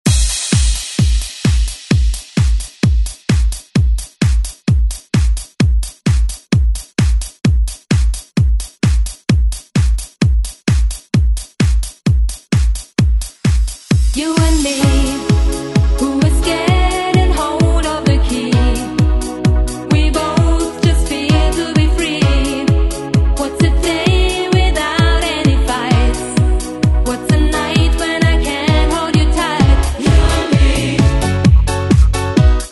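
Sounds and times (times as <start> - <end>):
90s drum beat: 0.0 - 32.7.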